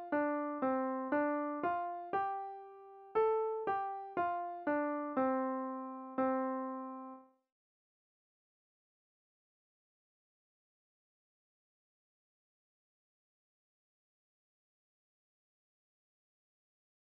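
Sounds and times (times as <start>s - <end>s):
melodic music: 0.0s - 7.2s.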